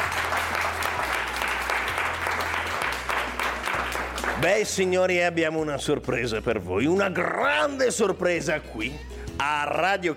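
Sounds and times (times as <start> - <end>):
sustained applause from a crowd: 0.0 - 4.6
speech: 4.4 - 10.1.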